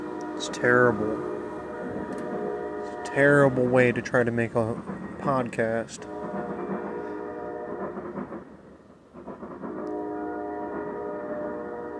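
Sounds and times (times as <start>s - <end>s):
train horn: 0.0s - 3.8s, 6.0s - 8.1s, 9.7s - 11.9s
train tracks rumbling and buckling: 0.0s - 11.9s
speech: 0.4s - 1.4s, 3.1s - 6.2s.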